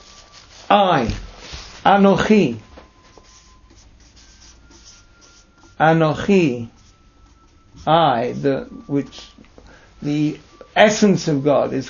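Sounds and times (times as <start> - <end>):
scratchy strokes of a word written by hand: 0.0 - 0.7, 3.1 - 5.8, 6.4 - 7.9
speech: 0.7 - 1.2, 1.8 - 2.7, 5.8 - 6.8, 7.8 - 9.4, 10.0 - 11.8.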